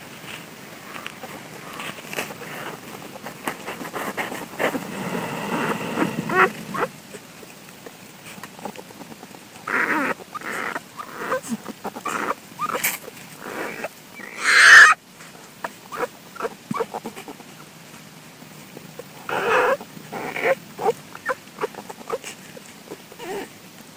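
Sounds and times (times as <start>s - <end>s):
cubs' mother snoring and grunting: 0.8s - 15.0s, 18.9s - 23.6s.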